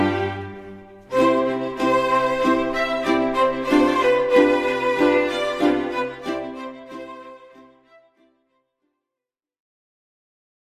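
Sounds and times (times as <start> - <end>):
ukulele music: 0.0 - 8.1.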